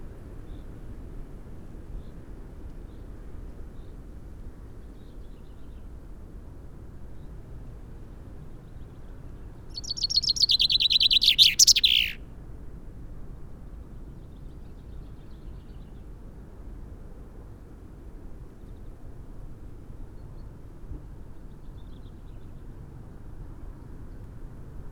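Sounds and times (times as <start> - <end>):
Fringilla coelebs common chaffinch song: 9.8 - 12.2.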